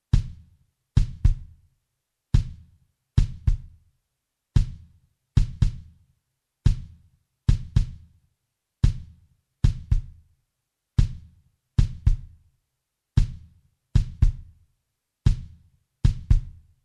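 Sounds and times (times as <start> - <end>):
kick drum: 0.0 - 1.7, 2.3 - 3.9, 4.5 - 6.0, 6.6 - 8.2, 8.8 - 10.3, 11.0 - 12.5, 13.1 - 16.8.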